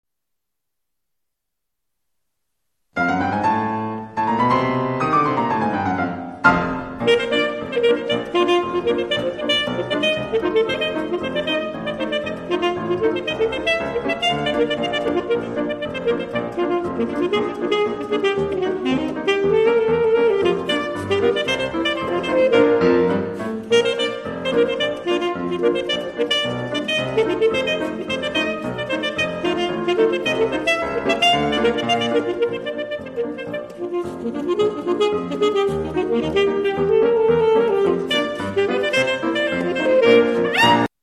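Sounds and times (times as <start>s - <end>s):
ragtime music: 3.0s - 41.0s.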